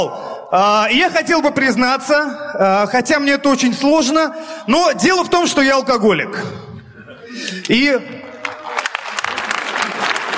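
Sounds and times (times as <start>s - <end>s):
speech: 0.0s - 6.7s, 7.3s - 8.2s
audience applause at a stand-up comedy show: 8.3s - 10.3s.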